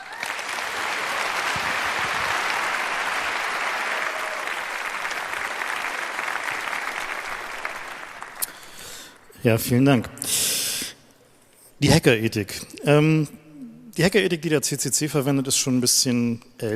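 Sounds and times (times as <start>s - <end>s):
audience applause: 0.0s - 9.1s
speech: 9.4s - 10.6s, 11.8s - 13.4s, 14.0s - 16.7s.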